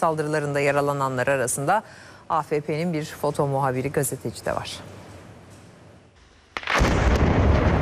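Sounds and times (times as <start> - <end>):
speech: 0.0 - 5.0
house blown up with explosives by Israeli soldiers in Biddu: 6.6 - 7.8.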